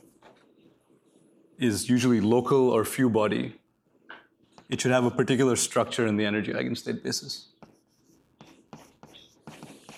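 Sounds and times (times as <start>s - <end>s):
speech: 1.6s - 3.6s, 4.7s - 7.6s
handwriting strokes during a physics lecture: 7.6s - 9.9s.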